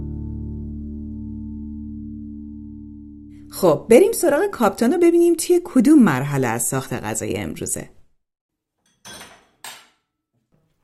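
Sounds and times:
speech: 0:03.5 - 0:08.0
size 20 pot set on a gas stove: 0:08.8 - 0:10.0.

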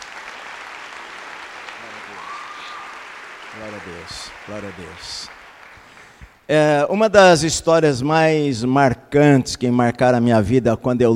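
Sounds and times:
audience applauding: 0:00.0 - 0:06.5
speech: 0:03.6 - 0:05.4, 0:06.5 - 0:11.1.

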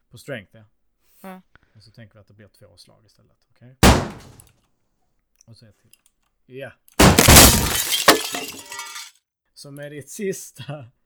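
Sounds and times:
speech: 0:00.2 - 0:04.6, 0:05.5 - 0:08.9, 0:09.6 - 0:11.0
window glass shattering: 0:03.8 - 0:04.4, 0:07.0 - 0:09.1.

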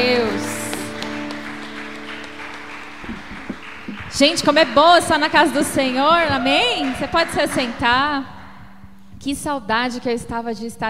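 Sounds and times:
audience applause: 0:00.0 - 0:08.2
speech: 0:04.2 - 0:08.4, 0:09.2 - 0:10.8.

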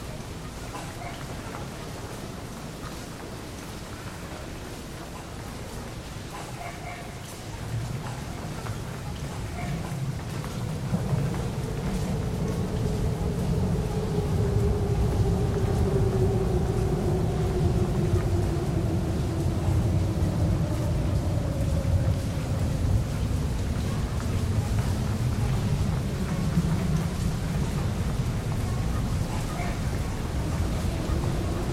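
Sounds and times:
constant hiss: 0:00.0 - 0:31.7
deep grainy rumble in Saint Petersburg: 0:10.0 - 0:31.7.

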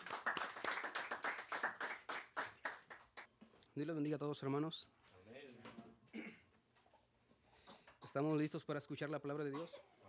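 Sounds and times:
audience clapping: 0:00.0 - 0:03.3
speech: 0:03.8 - 0:05.7, 0:08.2 - 0:09.9.

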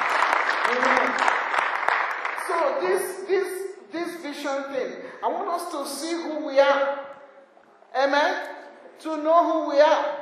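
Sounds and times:
audience clapping: 0:00.0 - 0:03.0
speech: 0:00.7 - 0:01.0, 0:02.5 - 0:07.0, 0:08.0 - 0:10.2.

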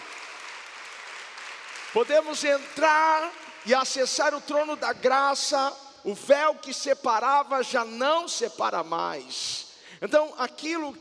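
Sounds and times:
audience applauding: 0:00.0 - 0:04.0
speech: 0:01.9 - 0:10.9.

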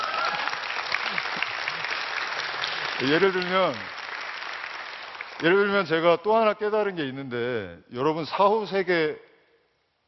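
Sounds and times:
crowd applause: 0:00.0 - 0:05.7
speech: 0:03.0 - 0:04.0, 0:05.4 - 0:09.3.

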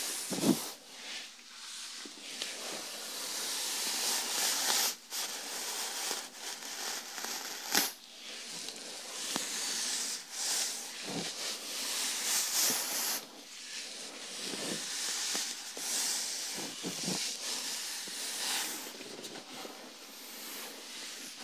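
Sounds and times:
shampoo lathering and scalp massage rubbing: 0:00.0 - 0:21.4.

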